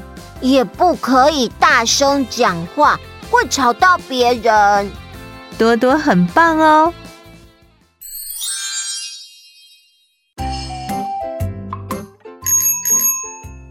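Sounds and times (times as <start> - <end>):
speech: 0.4 - 5.0, 5.6 - 7.0
bicycle bell ringing as a child rides up on a bicycle: 12.4 - 13.6.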